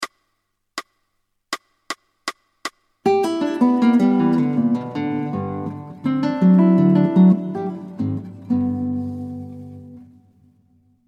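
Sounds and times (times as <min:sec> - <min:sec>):
fingerstyle guitar ringtone: 0:03.0 - 0:11.0.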